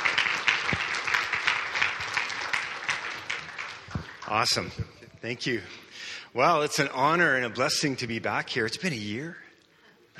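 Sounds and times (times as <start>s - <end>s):
audience applauding to welcome a speaker: 0.0s - 4.9s
louder individual claps: 0.0s - 5.0s
speech: 4.3s - 9.4s.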